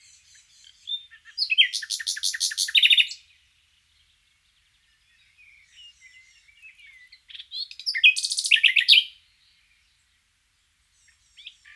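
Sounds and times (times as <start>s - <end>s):
common nightingale Luscinia megarhynchos song: 0.0s - 11.7s.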